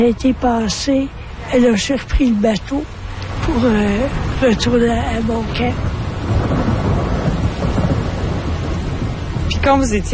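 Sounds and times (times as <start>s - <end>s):
speech: 0.0s - 6.4s, 9.6s - 10.1s
rain: 0.0s - 10.1s
thunder: 5.7s - 9.6s.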